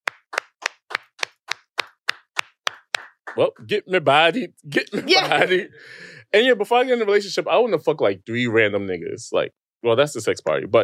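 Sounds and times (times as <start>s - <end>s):
sharp hand claps in a steady rhythm: 0.0s - 3.6s
speech: 3.4s - 10.8s.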